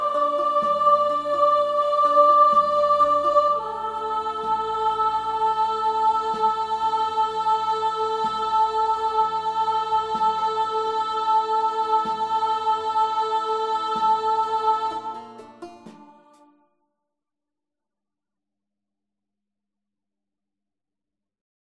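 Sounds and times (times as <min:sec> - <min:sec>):
descant melody: 0:00.0 - 0:16.6.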